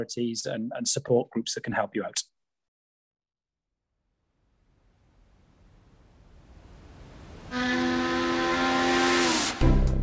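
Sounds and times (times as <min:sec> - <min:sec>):
speech: 0:00.0 - 0:02.3
ship's steam whistle as a vessel sets sail: 0:07.5 - 0:09.8.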